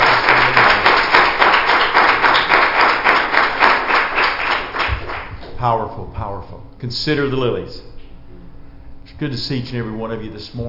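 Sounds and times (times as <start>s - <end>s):
audience hand clapping: 0.0s - 5.5s
speech: 5.6s - 7.9s, 9.1s - 10.6s.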